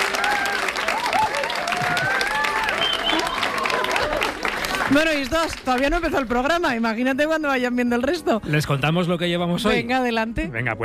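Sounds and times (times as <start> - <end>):
studio audience applause: 0.0 - 6.2
speech: 4.9 - 10.8.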